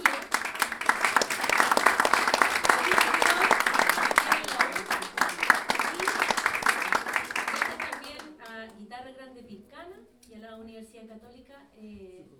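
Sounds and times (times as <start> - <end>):
audience applause at an improvised-verse performance: 0.0 - 8.3.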